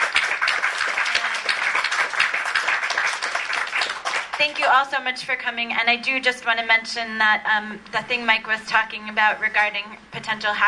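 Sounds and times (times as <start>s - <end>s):
audience applause for panel: 0.0s - 4.5s
speech: 4.4s - 10.6s.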